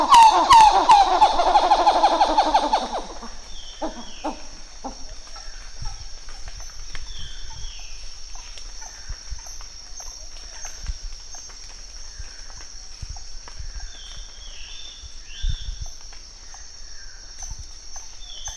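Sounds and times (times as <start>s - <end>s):
Plecturocebus cupreus duetting: 0.0s - 6.0s.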